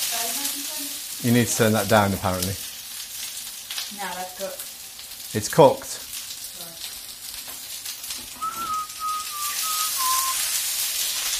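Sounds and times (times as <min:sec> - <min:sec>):
food sizzling in an overheated frying pan: 0:00.0 - 0:11.3
speech: 0:00.8 - 0:02.7, 0:04.0 - 0:04.7, 0:05.3 - 0:06.0
thin whistling tone: 0:08.4 - 0:10.6.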